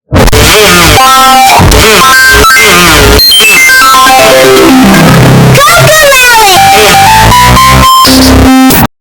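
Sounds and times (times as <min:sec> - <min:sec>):
distorted loud earrape intro: 0:00.1 - 0:08.9.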